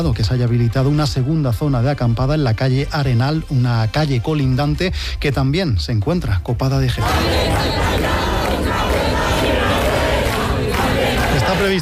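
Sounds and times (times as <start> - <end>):
speech: 0.0 - 8.3, 11.6 - 11.8
protest crowd chanting and shouting in a square: 7.0 - 11.8.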